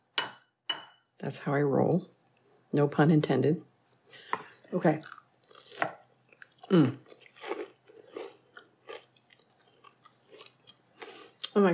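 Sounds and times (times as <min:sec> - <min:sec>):
speech: 0:01.2 - 0:05.2, 0:06.7 - 0:07.0, 0:11.6 - 0:11.7
crunching bites into gluten-free Irish soda bread with butter: 0:05.0 - 0:11.6.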